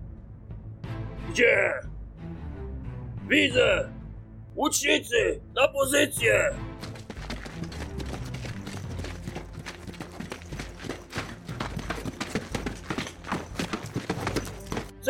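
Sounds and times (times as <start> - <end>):
speech: 1.3 - 1.9, 3.3 - 4.0, 4.6 - 6.8
horse galloping with hooves of approaching rider: 6.8 - 15.0.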